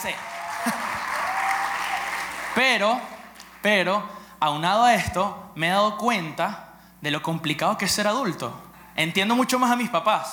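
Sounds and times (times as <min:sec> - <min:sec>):
speech: 0:00.0 - 0:00.8, 0:02.6 - 0:10.3
audience applause: 0:00.0 - 0:03.6.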